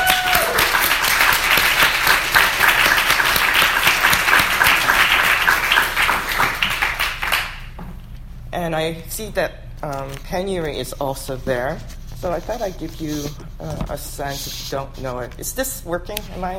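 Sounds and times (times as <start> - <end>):
audience applause: 0.0 - 7.7
speech: 8.7 - 16.5.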